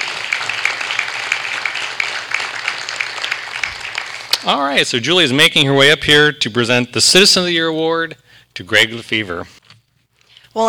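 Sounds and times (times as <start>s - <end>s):
round of applause: 0.0s - 4.7s
speech: 4.4s - 9.6s.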